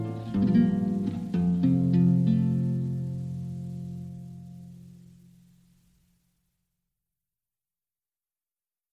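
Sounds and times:
piano: 0.0 - 5.1
guitar: 0.0 - 5.8.

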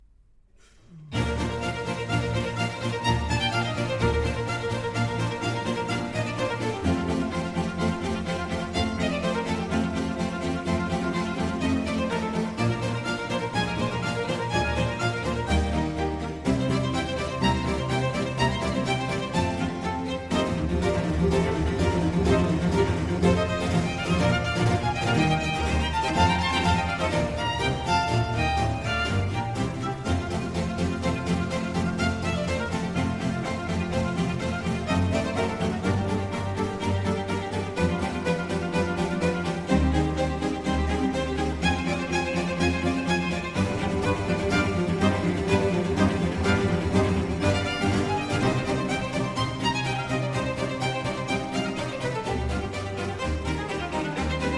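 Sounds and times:
allegro string concerto in B-flat major: 0.6 - 54.5.

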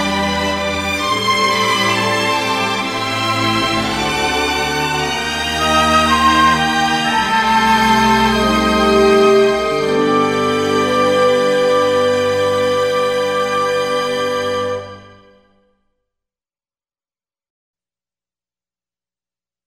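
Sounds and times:
string orchestra: 0.0 - 15.5.

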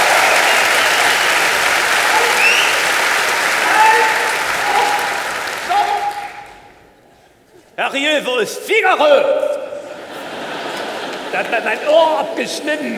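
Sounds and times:
audience applause: 0.0 - 7.0, 8.9 - 12.9
laughter: 0.0 - 12.9
speech: 7.9 - 9.5, 11.4 - 12.9.

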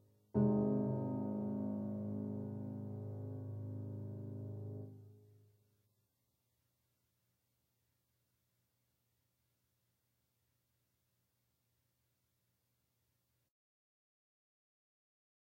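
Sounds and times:
piano sonata in C minor: 0.3 - 5.2.

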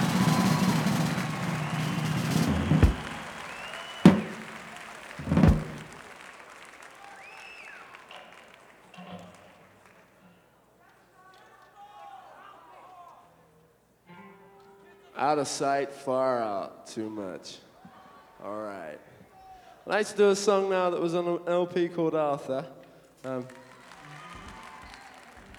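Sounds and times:
audience applause: 0.0 - 9.5, 23.4 - 25.5
speech: 15.2 - 17.7, 18.4 - 19.1, 19.9 - 23.6.

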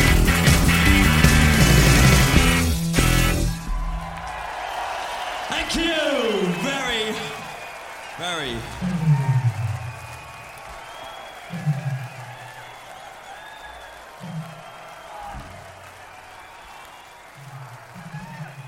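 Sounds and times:
cheering and clapping: 0.0 - 18.6
crowd roar: 0.0 - 18.6
low drawn-out shouts: 3.9 - 18.6.

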